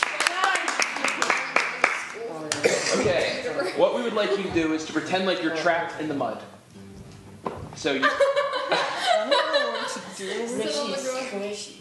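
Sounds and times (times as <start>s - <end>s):
audience applauding a volunteer: 0.0s - 2.6s
speech: 3.0s - 6.5s, 7.8s - 9.6s, 10.2s - 11.8s
laughter: 7.9s - 10.5s.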